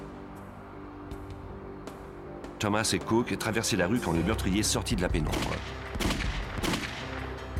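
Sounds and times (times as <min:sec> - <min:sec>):
speech: 0:02.6 - 0:05.8
gunshots: 0:05.3 - 0:07.4.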